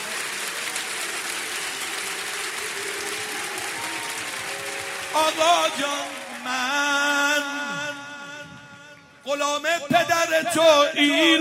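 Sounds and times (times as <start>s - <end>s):
audience at a religious gathering clapping the Heydari clap: 0.0s - 8.4s
speech: 5.2s - 8.0s, 9.3s - 11.3s.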